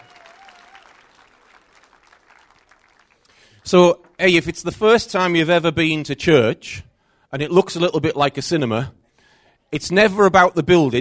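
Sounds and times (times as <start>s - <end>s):
audience applause for the band: 0.0s - 3.6s
speech: 3.6s - 9.0s, 9.7s - 10.9s.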